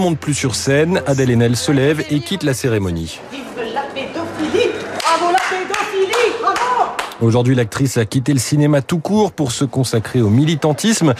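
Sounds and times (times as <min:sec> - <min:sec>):
speech: 0:00.0 - 0:03.6, 0:07.2 - 0:11.1
applause: 0:05.0 - 0:07.2.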